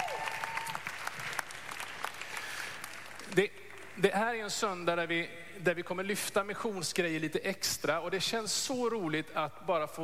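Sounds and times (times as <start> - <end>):
audience applauding: 0.0 - 3.9
speech: 3.4 - 10.0.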